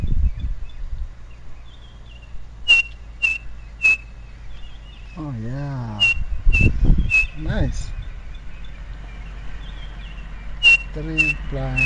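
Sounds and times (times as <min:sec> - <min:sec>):
faint low rumble: 0:00.0 - 0:11.8
small bird's whistled three-note call: 0:02.7 - 0:05.1, 0:05.9 - 0:07.5, 0:09.6 - 0:11.8
speech: 0:11.0 - 0:11.8.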